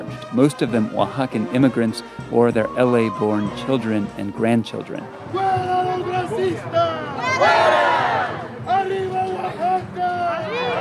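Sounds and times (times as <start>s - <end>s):
speech: 0.3s - 7.9s
protest crowd shouting and chanting: 5.3s - 10.7s.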